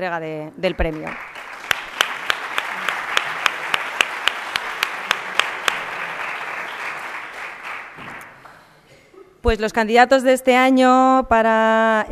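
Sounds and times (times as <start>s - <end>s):
speech: 0.0s - 1.4s, 9.4s - 12.1s
audience applause: 0.8s - 8.4s.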